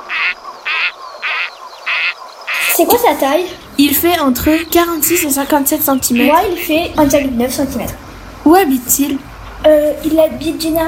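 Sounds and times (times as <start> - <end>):
gadwall duck quacking: 0.0 - 7.4
speech: 2.8 - 10.8.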